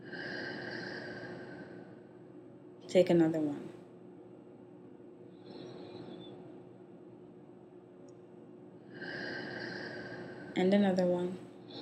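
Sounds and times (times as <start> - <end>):
deep breath in through the nose and out through the mouth during a guided relaxation: 0.0 - 2.2, 5.3 - 6.4, 8.8 - 10.6
speech: 2.9 - 3.8, 10.6 - 11.4.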